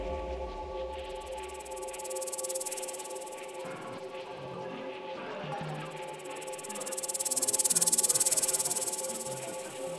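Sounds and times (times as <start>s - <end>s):
low steady hum: 0.0s - 4.0s
insect chirping: 0.0s - 9.9s.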